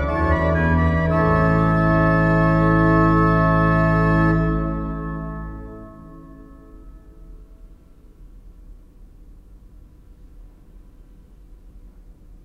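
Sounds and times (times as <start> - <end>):
pipe organ with Holfluit, Prestant, Woudfluit, Subbas and coupler: 0.0 - 7.6.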